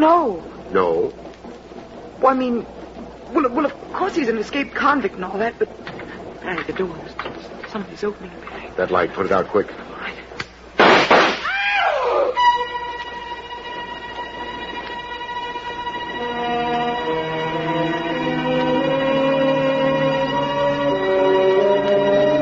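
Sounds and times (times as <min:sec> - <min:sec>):
speech: 0:00.0 - 0:01.3, 0:02.2 - 0:09.9
low rumbling train noise: 0:00.0 - 0:10.8, 0:12.3 - 0:22.4
gunshots fired in the dark: 0:10.8 - 0:11.6
long steady wail of layered whistle-like tones: 0:11.4 - 0:13.0.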